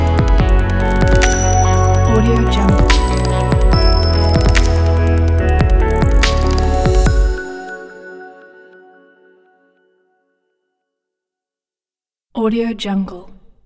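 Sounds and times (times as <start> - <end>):
technology background music: 0.0 - 8.6.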